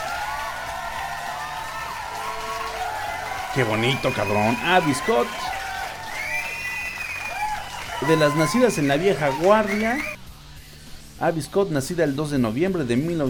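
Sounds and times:
crowd cheering with whoops and whistles: 0:00.0 - 0:10.2
steady clapping: 0:00.0 - 0:10.2
man talking loudly and excitedly: 0:03.4 - 0:05.6, 0:08.0 - 0:10.2, 0:11.2 - 0:13.2
speech: 0:03.6 - 0:05.6, 0:08.0 - 0:10.2, 0:11.2 - 0:13.2.

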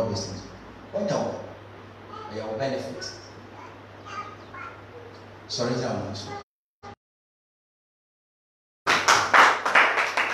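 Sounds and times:
speech: 0:00.2 - 0:00.4, 0:02.3 - 0:03.3, 0:05.5 - 0:07.0
several people clapping hands: 0:08.9 - 0:10.3.

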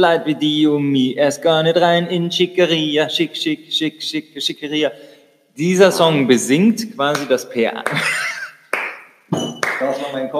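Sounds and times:
speech: 0:00.0 - 0:08.3, 0:09.3 - 0:10.3
laughter: 0:07.9 - 0:08.6
applause: 0:08.7 - 0:09.0, 0:09.6 - 0:10.0.

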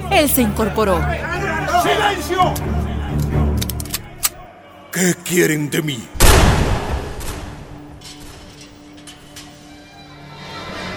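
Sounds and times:
speech: 0:00.1 - 0:02.8, 0:05.0 - 0:06.2
gunshot: 0:06.2 - 0:07.8.

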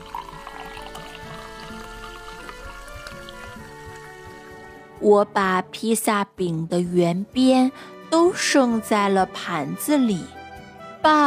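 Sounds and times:
beer bubbling in a glass: 0:00.0 - 0:04.2
speech: 0:05.0 - 0:10.4, 0:11.0 - 0:11.2.

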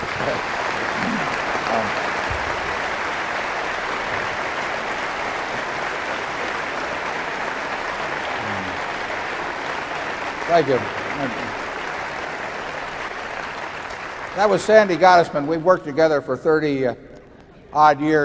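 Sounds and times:
rousing audience applause: 0:00.0 - 0:15.8
speech: 0:10.5 - 0:11.5, 0:14.4 - 0:17.1, 0:17.7 - 0:18.2.

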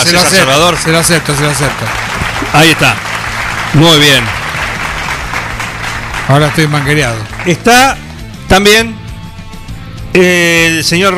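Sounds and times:
speech: 0:00.0 - 0:03.1, 0:03.7 - 0:04.4, 0:06.3 - 0:09.0, 0:10.1 - 0:11.1
audience applause: 0:00.0 - 0:07.7.

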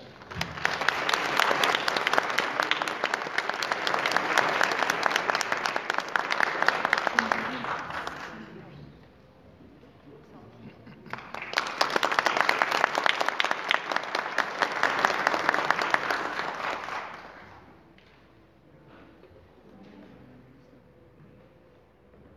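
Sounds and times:
strong audience applause: 0:00.0 - 0:08.7, 0:11.1 - 0:17.7.

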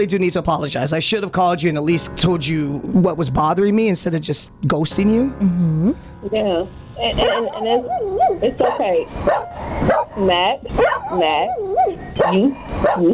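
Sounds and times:
speech: 0:00.0 - 0:13.1
dog barking: 0:07.1 - 0:13.1.

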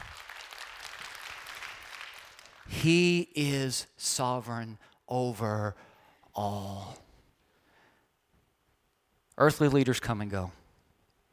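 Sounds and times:
audience clapping: 0:00.0 - 0:03.2
speech: 0:02.7 - 0:07.0, 0:09.4 - 0:10.6.

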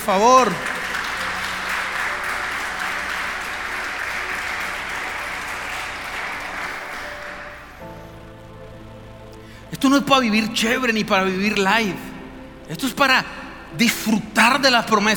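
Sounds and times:
speech: 0:00.0 - 0:00.7, 0:09.9 - 0:12.1, 0:12.7 - 0:15.1
audience applause: 0:00.0 - 0:08.2.

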